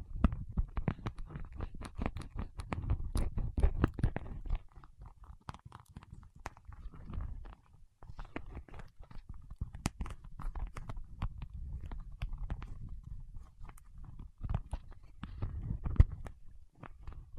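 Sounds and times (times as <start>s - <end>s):
wax fingertip sounds: 0.2s - 17.3s.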